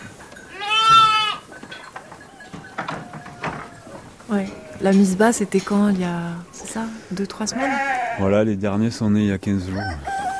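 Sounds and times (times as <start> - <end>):
sheep bleating: 0.5 - 1.5, 7.4 - 8.3
speech: 4.3 - 10.1.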